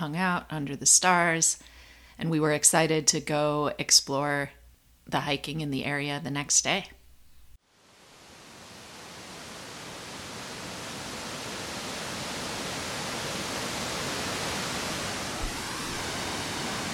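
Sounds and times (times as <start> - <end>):
speech: 0.0 - 7.0
river waterfall roaring at its upper falls on a sunny day: 7.9 - 16.9.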